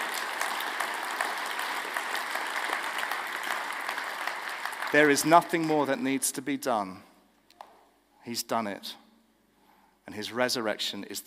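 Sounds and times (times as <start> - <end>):
audience applauding: 0.0 - 6.1
speech: 4.9 - 7.1, 8.2 - 9.0, 10.1 - 11.2.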